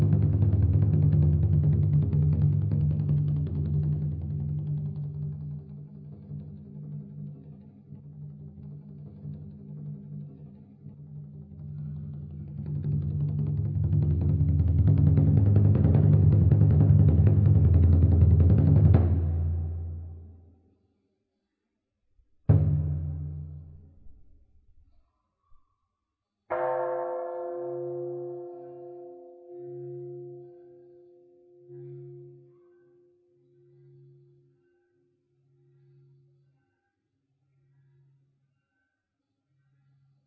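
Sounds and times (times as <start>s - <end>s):
drum roll: 0.0s - 5.6s, 12.4s - 20.3s, 22.5s - 23.9s.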